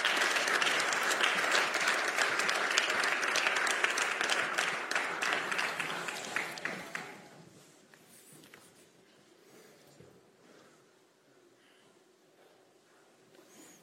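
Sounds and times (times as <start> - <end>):
welcoming applause from a crowd: 0.0 - 7.3.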